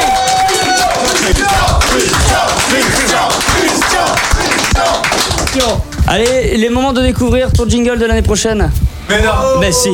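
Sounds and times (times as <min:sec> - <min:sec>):
audience applauding: 0:00.0 - 0:06.4
speech: 0:06.1 - 0:09.9.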